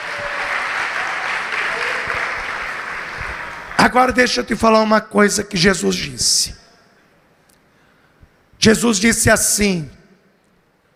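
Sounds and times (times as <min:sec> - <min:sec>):
audience applauding: 0:00.0 - 0:03.8
speech: 0:03.8 - 0:06.6, 0:08.6 - 0:10.0.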